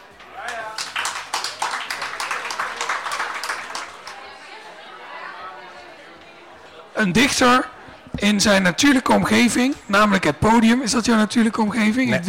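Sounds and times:
audience applause: 0:00.4 - 0:04.4
speech: 0:07.0 - 0:12.2.

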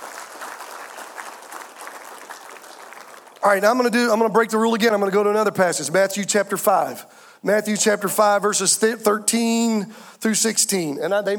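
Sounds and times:
audience hand clapping applause: 0:00.0 - 0:04.2
speech: 0:03.4 - 0:11.3.

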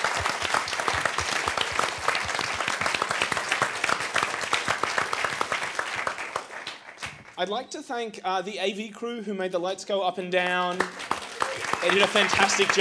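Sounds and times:
audience applause: 0:00.0 - 0:07.1, 0:10.8 - 0:12.7
speech: 0:07.4 - 0:11.1, 0:11.8 - 0:12.7.

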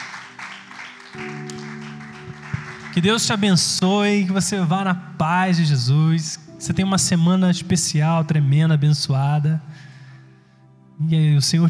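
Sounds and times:
audience applause: 0:00.0 - 0:03.4
sustained organ or keyboard chords droning: 0:00.0 - 0:09.6
speech: 0:03.0 - 0:09.9, 0:11.0 - 0:11.6.

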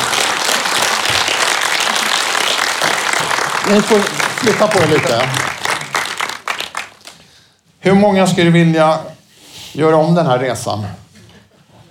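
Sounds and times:
audience applause: 0:00.0 - 0:07.2
speech: 0:03.7 - 0:05.5, 0:07.8 - 0:11.0.

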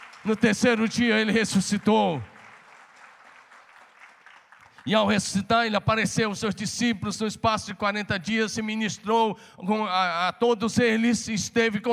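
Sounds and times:
audience applauding: 0:00.0 - 0:05.2
speech: 0:00.2 - 0:02.3, 0:04.8 - 0:11.9.

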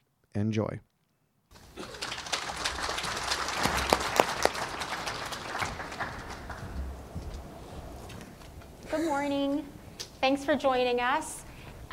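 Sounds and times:
speech: 0:00.4 - 0:00.9, 0:08.9 - 0:11.4
applause from the audience at a home-building industry breakfast event: 0:01.6 - 0:07.2.

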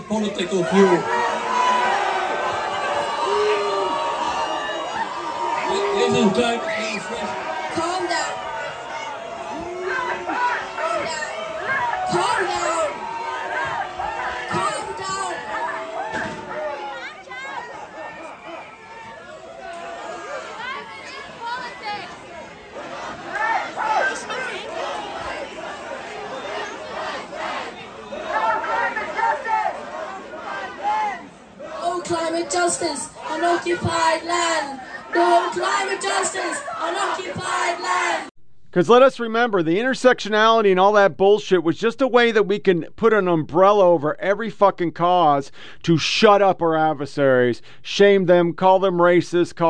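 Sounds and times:
crowd babble at a climate demonstration: 0:00.0 - 0:38.3
loud shouts at a climate demonstration: 0:00.0 - 0:38.3
speech: 0:00.1 - 0:01.3, 0:06.1 - 0:07.2, 0:38.8 - 0:49.6.

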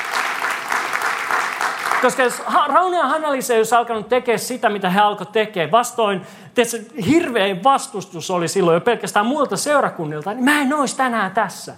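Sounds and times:
audience applause: 0:00.0 - 0:02.5
speech: 0:02.0 - 0:11.7.

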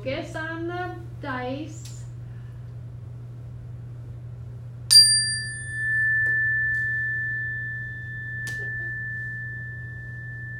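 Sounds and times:
speech: 0:00.0 - 0:01.9
meditation chime struck and ringing: 0:04.9 - 0:10.5.

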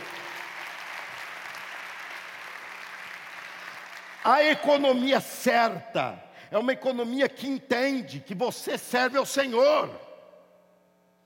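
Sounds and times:
audience applause: 0:00.0 - 0:04.3
speech: 0:04.2 - 0:10.1.

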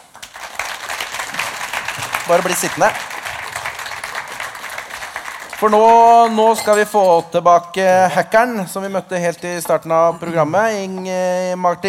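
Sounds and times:
audience applause: 0:00.0 - 0:06.7
speech: 0:02.3 - 0:03.1, 0:05.6 - 0:11.8.

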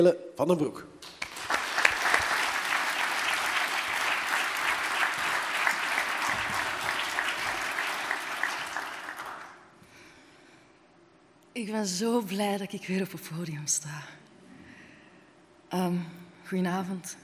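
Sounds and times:
speech: 0:00.0 - 0:01.2, 0:11.6 - 0:14.2, 0:15.7 - 0:17.2
audience clapping: 0:01.0 - 0:09.8.

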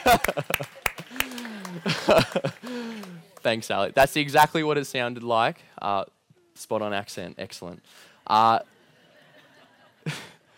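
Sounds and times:
people laughing: 0:00.0 - 0:03.4, 0:08.6 - 0:10.5
small group clapping for a performer: 0:00.0 - 0:03.6
speech: 0:00.1 - 0:00.7, 0:03.5 - 0:08.7, 0:10.0 - 0:10.3.

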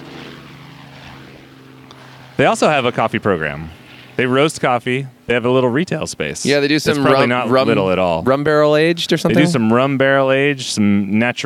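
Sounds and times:
police helicopter flying overhead: 0:00.0 - 0:10.5
speech: 0:02.4 - 0:11.4.

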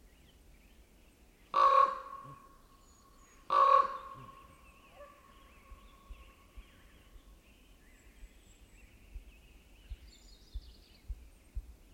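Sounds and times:
Common Raven croaking: 0:03.5 - 0:04.4.

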